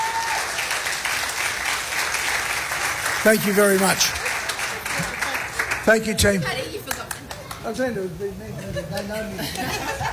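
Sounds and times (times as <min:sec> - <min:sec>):
applause: 0:00.0 - 0:07.6
speech: 0:03.2 - 0:04.3, 0:05.9 - 0:06.9, 0:07.6 - 0:10.1
laughter: 0:08.6 - 0:10.1.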